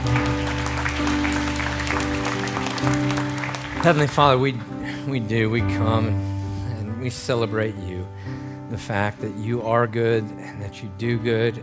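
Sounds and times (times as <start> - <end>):
audience clapping: 0.0 - 5.0
speech: 3.8 - 6.3, 7.0 - 8.0, 8.7 - 11.6.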